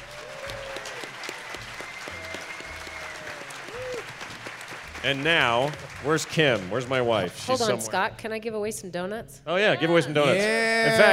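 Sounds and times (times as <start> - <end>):
audience applause: 0.0 - 7.5
speech: 5.0 - 11.1.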